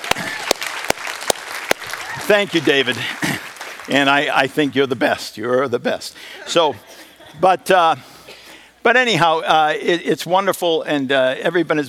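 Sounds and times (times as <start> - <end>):
loud evenly spaced claps: 0.0 - 4.3
audience round of applause: 0.0 - 4.5
speech: 2.3 - 3.3, 3.9 - 8.1, 8.8 - 11.8.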